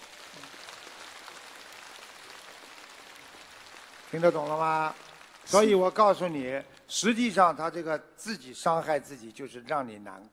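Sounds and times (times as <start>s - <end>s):
audience applause: 0.0s - 6.5s
speech: 4.1s - 10.3s.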